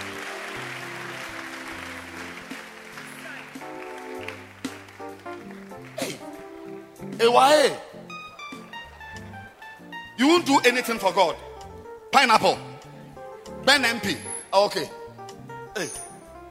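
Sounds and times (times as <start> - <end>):
people clapping for a young girl at home: 0.0 - 11.1
speech: 7.2 - 7.9, 10.2 - 11.5, 12.1 - 12.7, 13.7 - 15.0, 15.8 - 16.1.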